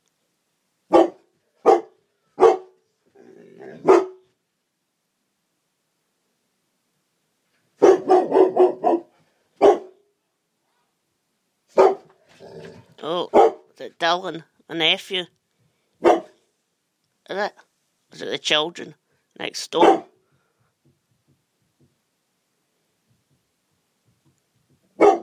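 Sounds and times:
dog barking: 0:00.9 - 0:02.8, 0:03.7 - 0:04.3, 0:07.8 - 0:10.0, 0:11.7 - 0:12.2, 0:13.3 - 0:13.7, 0:16.0 - 0:16.4, 0:19.8 - 0:20.2, 0:25.0 - 0:25.2
speech: 0:13.0 - 0:15.4, 0:17.3 - 0:20.1.

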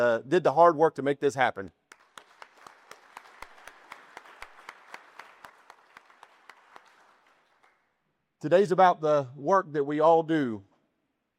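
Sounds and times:
speech: 0:00.0 - 0:01.8, 0:08.4 - 0:10.7
audience applause: 0:01.9 - 0:07.8.

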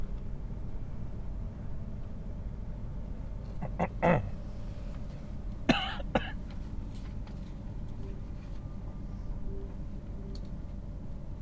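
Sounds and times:
train: 0:00.0 - 0:11.4.

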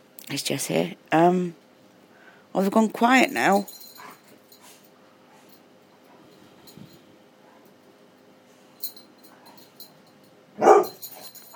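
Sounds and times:
speech: 0:00.3 - 0:01.6, 0:02.6 - 0:03.8
dogs barking while playing: 0:10.6 - 0:11.5.

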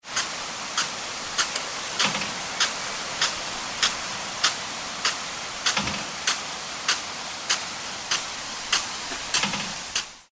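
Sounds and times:
large farm sprinkler: 0:00.0 - 0:10.2.

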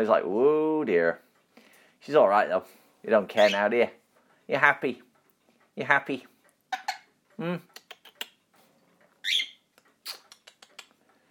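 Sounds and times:
speech: 0:00.0 - 0:01.3, 0:02.0 - 0:05.1, 0:05.8 - 0:06.3, 0:07.4 - 0:07.8
pet bird chirping: 0:03.2 - 0:03.9, 0:06.6 - 0:08.5, 0:09.2 - 0:11.0.

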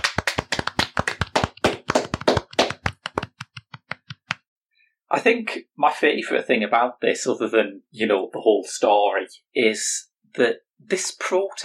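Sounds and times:
small group applauding: 0:00.0 - 0:03.4
speech: 0:05.1 - 0:11.6.

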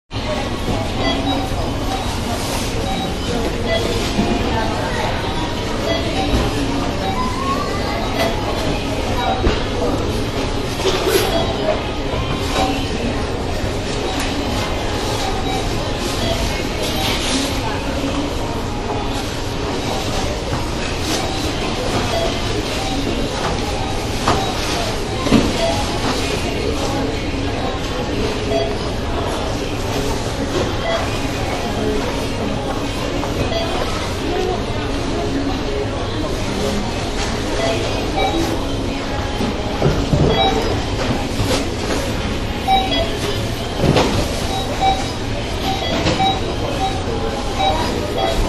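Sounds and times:
supermarket checkout beep: 0:00.2 - 0:48.4.

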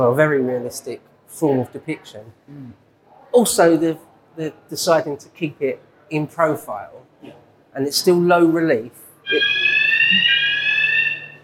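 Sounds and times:
speech: 0:00.0 - 0:10.4
proximity alarm tone: 0:09.2 - 0:11.4.

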